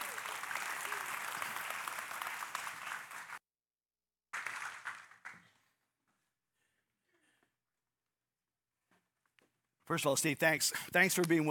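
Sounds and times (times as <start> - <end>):
audience applause: 0.0 - 3.4, 4.3 - 5.6
speech: 9.9 - 11.4.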